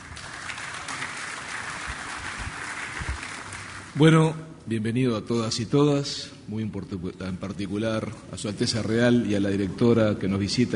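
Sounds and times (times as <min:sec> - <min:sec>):
audience applauding the mayor of Montevideo at an official ceremony: 0:00.0 - 0:04.2
speech: 0:04.0 - 0:10.7.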